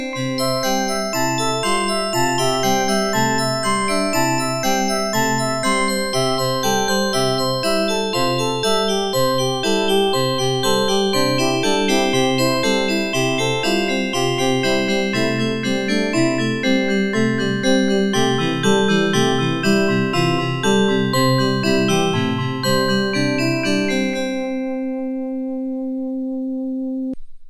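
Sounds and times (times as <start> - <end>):
OPL3 FM synthesizer music: 0.1 - 27.1.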